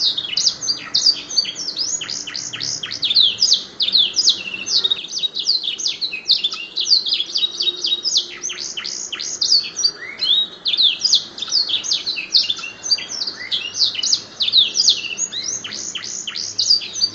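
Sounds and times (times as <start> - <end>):
canary song: 0.0 - 17.1.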